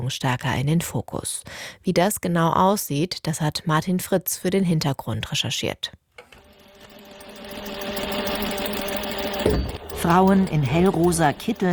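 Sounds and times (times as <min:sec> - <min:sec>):
speech: 0:00.1 - 0:06.0, 0:10.0 - 0:11.7
industrial sewing machines rattling in a women's prison workroom: 0:06.4 - 0:11.7.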